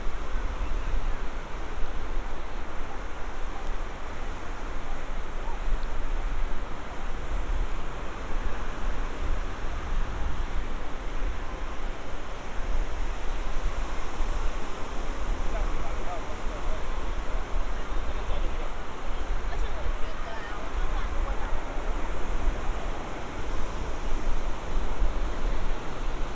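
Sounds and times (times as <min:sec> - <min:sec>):
surf washing in at Santa Monica Pier beach: 0:00.0 - 0:26.3
faint murmur of voices: 0:15.4 - 0:23.4.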